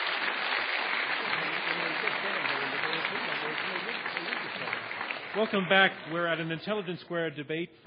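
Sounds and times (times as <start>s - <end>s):
audience applause: 0.0s - 6.9s
speech: 5.4s - 7.8s.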